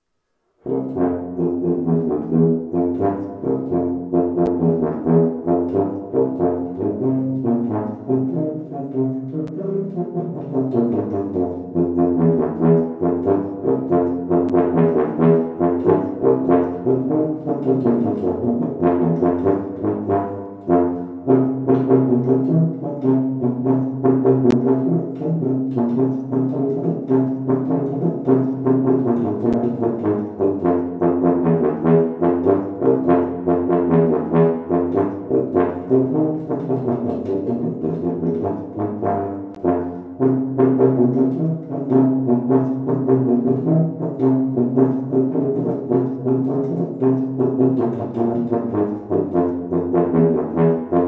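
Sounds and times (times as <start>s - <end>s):
tuba solo: 0.5s - 51.0s.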